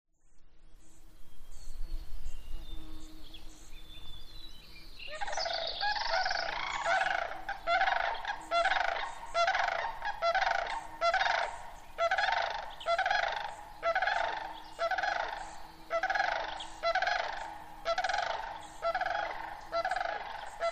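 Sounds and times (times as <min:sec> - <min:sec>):
Sandhill cranes giving rolling rattling bugled calls: 0:05.2 - 0:20.7.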